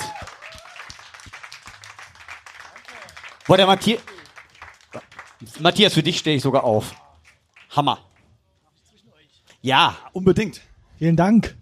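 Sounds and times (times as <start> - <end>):
audience applause: 0.0 - 8.3
speech: 3.5 - 4.1, 5.4 - 7.0, 7.7 - 8.1, 9.6 - 11.5.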